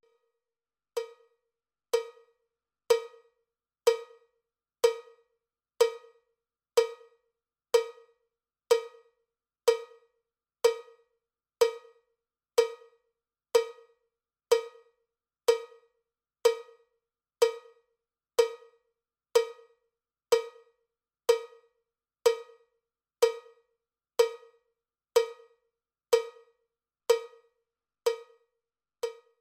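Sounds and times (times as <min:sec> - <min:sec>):
cowbell click track: 0:01.0 - 0:04.2, 0:04.8 - 0:05.2, 0:05.8 - 0:06.2, 0:07.8 - 0:09.1, 0:09.7 - 0:12.0, 0:15.5 - 0:15.9, 0:16.5 - 0:17.8, 0:18.4 - 0:18.8, 0:19.4 - 0:21.7, 0:22.3 - 0:23.6, 0:24.2 - 0:24.6, 0:25.2 - 0:28.4, 0:29.0 - 0:29.4.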